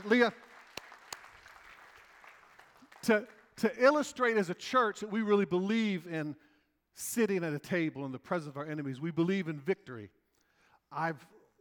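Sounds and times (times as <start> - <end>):
speech: 0.0 - 0.5, 3.0 - 10.2, 10.9 - 11.6
crowd round of applause: 0.0 - 3.0.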